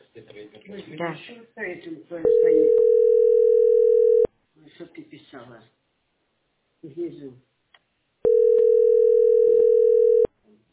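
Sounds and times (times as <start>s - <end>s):
speech: 0.2s - 3.8s, 4.8s - 5.8s, 6.8s - 7.5s
telephone dial tone while dialing a number: 2.3s - 4.3s, 8.3s - 10.3s.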